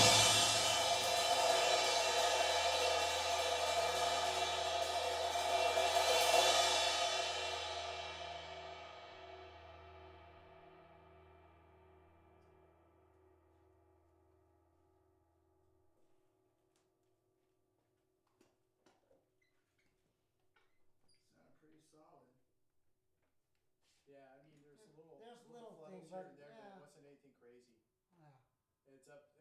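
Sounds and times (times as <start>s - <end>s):
drums recorded with stereo overhead microphones: 0.0s - 11.9s.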